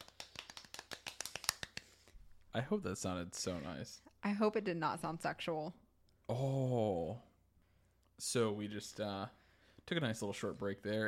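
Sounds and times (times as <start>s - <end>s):
gentle hand clapping: 0.0s - 2.0s
speech: 2.6s - 7.3s, 8.2s - 11.0s.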